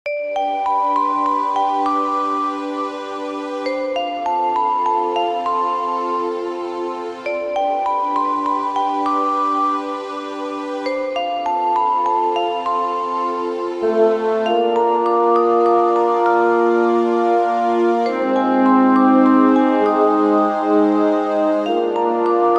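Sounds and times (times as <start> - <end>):
village studio background music: 0.1 - 22.5.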